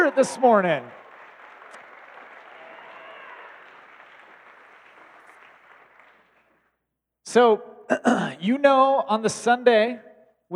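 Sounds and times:
round of applause: 0.0s - 6.8s
speech: 0.1s - 1.0s, 7.3s - 10.5s.

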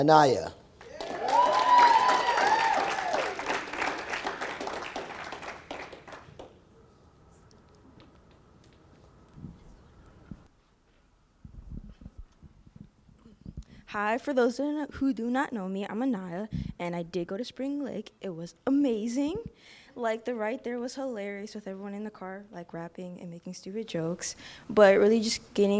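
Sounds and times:
speech: 0.0s - 0.6s, 14.0s - 25.7s
audience clapping: 0.8s - 6.6s.

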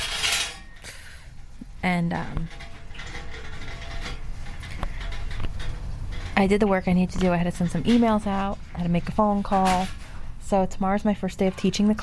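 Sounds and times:
speech: 1.8s - 2.6s, 6.4s - 12.0s
cart rolling by: 2.4s - 10.2s.

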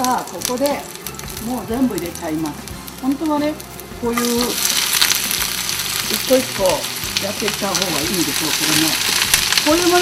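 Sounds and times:
garlic sizzling in a hot pan: 0.0s - 10.0s
speech: 0.1s - 4.7s, 6.1s - 10.0s.

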